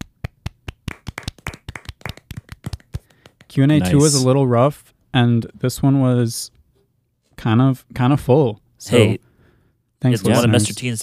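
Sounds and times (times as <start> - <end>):
golf clap from a small audience: 0.0 - 3.6
speech: 3.5 - 6.6, 7.4 - 9.2, 10.0 - 11.0.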